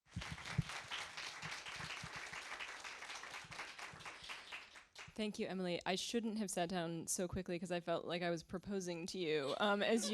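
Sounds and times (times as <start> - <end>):
audience applause: 0.1 - 5.1
speech: 5.2 - 10.1.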